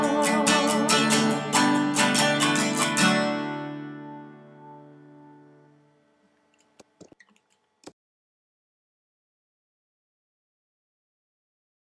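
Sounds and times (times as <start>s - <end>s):
tenor singing: 0.0s - 2.7s.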